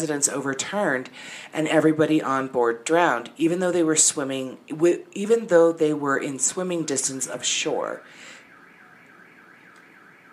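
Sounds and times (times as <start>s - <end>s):
speech: 0.0s - 8.4s
car alarm going off: 6.7s - 10.3s.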